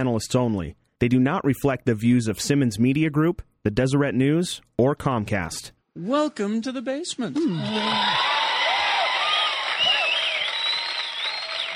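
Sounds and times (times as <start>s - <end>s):
speech: 0.0s - 8.4s
studio audience cheering and whooping: 7.5s - 11.7s
steady applause of studio audience: 7.6s - 11.7s.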